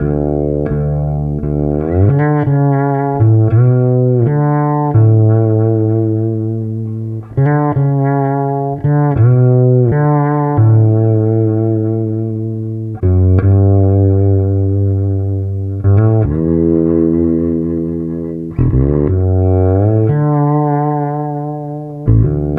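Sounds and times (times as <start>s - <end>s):
bass: 0.0s - 22.5s.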